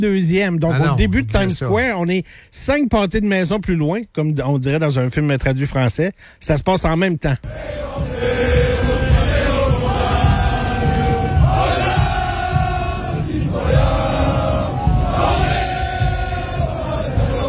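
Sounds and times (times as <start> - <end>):
speech: 0.0 - 8.2
crowd singing in the street: 7.4 - 17.4.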